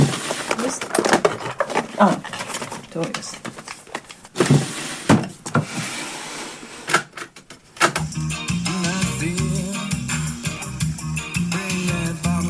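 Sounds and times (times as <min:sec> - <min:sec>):
drawer holding the remote control sliding open: 0:00.0 - 0:02.8, 0:04.4 - 0:08.0
speech: 0:02.0 - 0:02.3, 0:03.0 - 0:03.5
music from a cassette player: 0:07.8 - 0:12.4.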